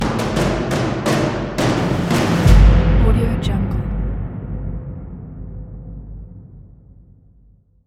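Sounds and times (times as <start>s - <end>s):
cinematic trailer drums: 0.0s - 7.8s.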